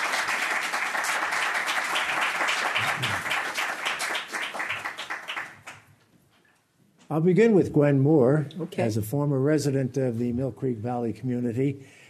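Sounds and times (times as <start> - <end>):
audience applause: 0.0 - 5.9
speech: 7.1 - 12.0.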